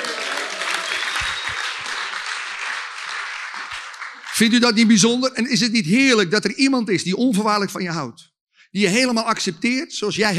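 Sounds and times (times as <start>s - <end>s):
audience applause: 0.0s - 4.8s
speech: 4.4s - 10.3s.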